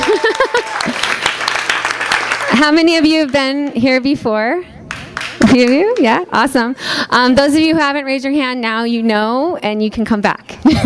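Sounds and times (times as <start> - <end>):
audience applause: 0.0 - 3.3
speech: 2.6 - 4.8, 5.5 - 10.8.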